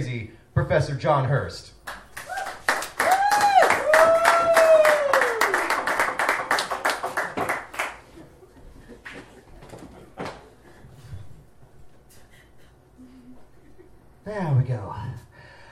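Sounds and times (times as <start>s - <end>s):
speech: 0.0s - 1.8s
audience applause: 2.1s - 8.2s.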